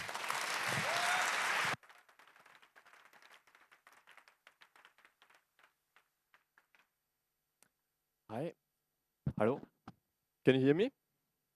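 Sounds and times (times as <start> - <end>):
audience applause: 0.0 - 6.9
speech: 8.4 - 8.6, 9.4 - 9.7, 10.4 - 11.0.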